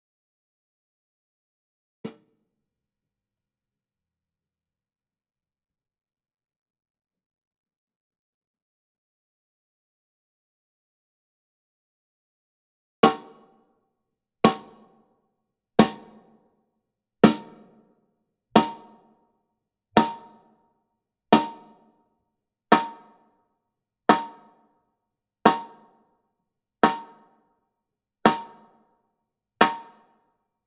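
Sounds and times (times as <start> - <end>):
snare drum recorded from the top: 13.0 - 13.4, 15.8 - 16.2, 17.2 - 17.8, 18.6 - 19.0, 20.0 - 20.4, 21.4 - 21.7, 26.8 - 27.2, 28.3 - 28.6, 29.6 - 30.0.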